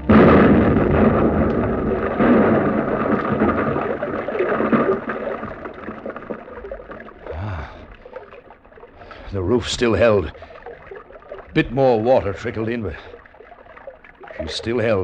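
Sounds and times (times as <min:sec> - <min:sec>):
explosive charge detonating in a mine tunnel: 0:00.0 - 0:06.7
speech: 0:09.6 - 0:10.5, 0:11.6 - 0:13.1, 0:14.4 - 0:15.0.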